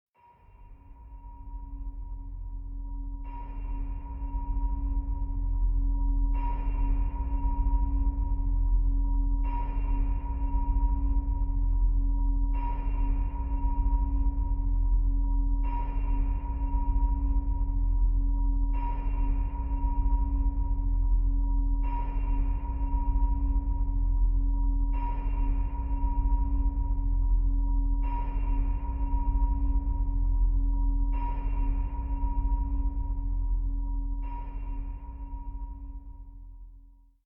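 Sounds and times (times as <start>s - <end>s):
haunting atmosphere for scary scenes: 0.4s - 36.4s.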